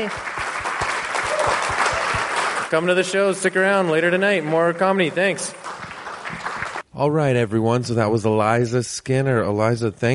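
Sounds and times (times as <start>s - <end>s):
speech: 0.0s - 0.3s, 2.7s - 5.6s, 7.0s - 10.1s
audience applause: 0.0s - 6.8s.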